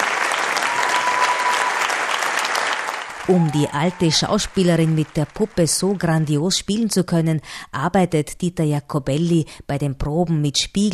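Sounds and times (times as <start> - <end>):
audience applause, standing ovation: 0.0 - 6.2
speech: 3.3 - 10.9.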